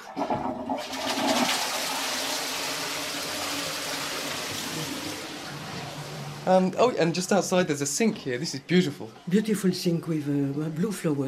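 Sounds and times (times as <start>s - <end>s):
old chain-pull toilet flushing: 0.0s - 7.4s
speech: 6.5s - 11.2s.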